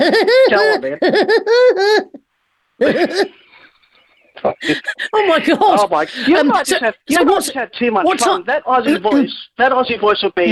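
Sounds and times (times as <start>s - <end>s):
voice imitating the Woody Woodpecker laugh: 0.0s - 2.2s, 2.8s - 3.4s, 4.4s - 7.4s
speech: 0.1s - 2.2s, 2.8s - 3.4s, 4.4s - 10.4s.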